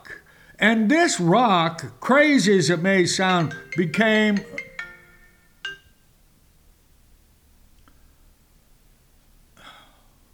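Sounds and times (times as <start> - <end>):
speech: 0.6 - 4.6
mobile phone ringing: 2.7 - 6.0.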